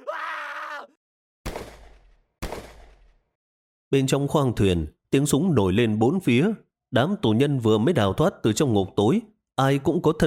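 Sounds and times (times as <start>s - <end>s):
agonized scream of a man falling: 0.0s - 1.0s
speech: 3.9s - 10.2s.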